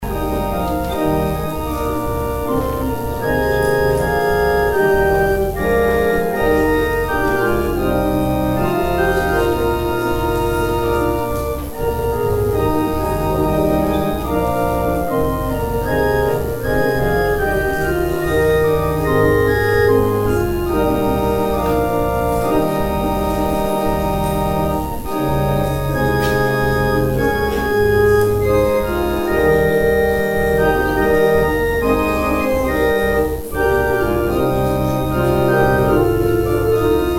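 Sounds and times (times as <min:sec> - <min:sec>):
organ interlude: 0:00.0 - 0:37.1.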